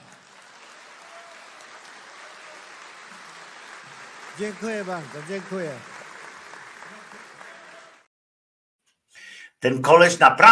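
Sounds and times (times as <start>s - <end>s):
applause: 0.0s - 8.1s
speech: 4.4s - 5.9s, 9.6s - 10.4s.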